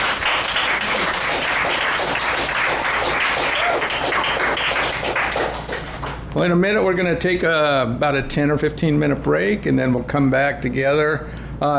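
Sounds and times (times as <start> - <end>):
audience clapping: 0.0 - 6.3
speech: 6.4 - 11.7.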